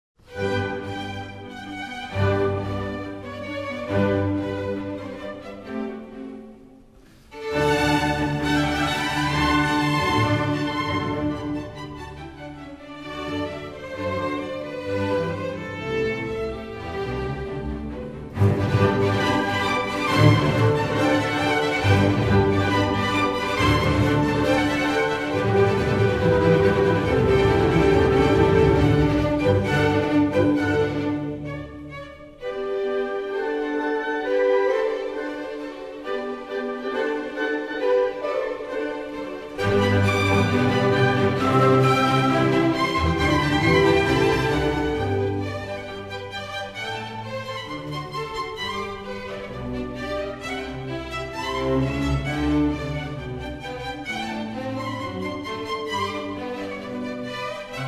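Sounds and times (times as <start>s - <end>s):
violin concerto: 0.2s - 57.8s.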